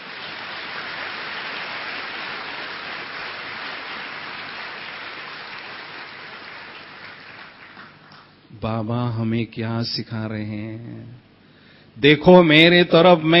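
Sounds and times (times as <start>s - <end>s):
audience clapping: 0.0s - 8.4s
speech: 8.6s - 11.2s, 12.0s - 13.3s.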